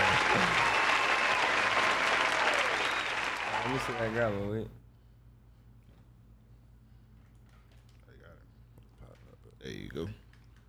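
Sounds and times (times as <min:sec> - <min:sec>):
applause from a small group: 0:00.0 - 0:04.5
speech: 0:03.8 - 0:04.8, 0:10.0 - 0:10.2.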